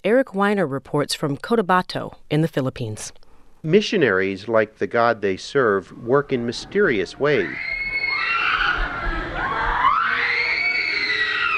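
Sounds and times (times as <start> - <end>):
speech: 0.0 - 8.6
screams echoing from a small white building in Cotabato: 5.9 - 11.5.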